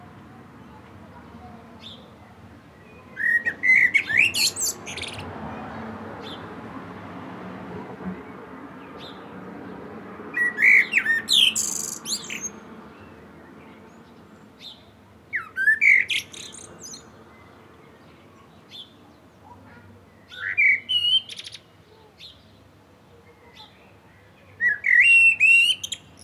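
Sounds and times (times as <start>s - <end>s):
common blackbird singing: 2.8s - 5.3s, 10.3s - 19.2s, 20.1s - 22.6s, 23.4s - 26.2s.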